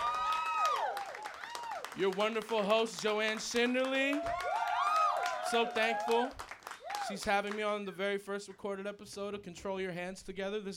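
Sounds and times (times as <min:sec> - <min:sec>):
crowd cheering and whooping: 0:00.0 - 0:02.0, 0:04.0 - 0:07.2
audience clapping: 0:00.0 - 0:08.0
speech: 0:02.0 - 0:04.5, 0:05.5 - 0:06.5, 0:07.1 - 0:10.7.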